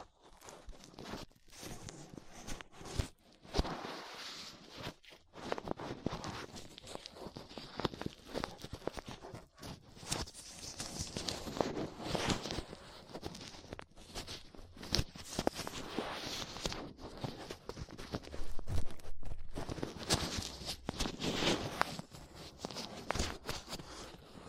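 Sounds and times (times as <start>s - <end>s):
ear cleaning with latex gloves dental pick and cotton swabs: 0.0s - 24.4s.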